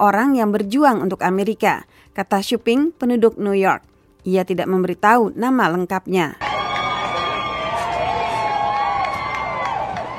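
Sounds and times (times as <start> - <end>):
speech: 0.0 - 6.4
large crowd cheering outdoors in the street: 6.4 - 10.1.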